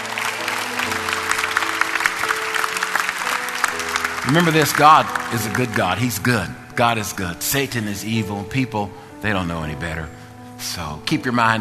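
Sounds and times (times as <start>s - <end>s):
church congregation applauding first-time guests: 0.0s - 7.6s
speech: 4.2s - 11.6s.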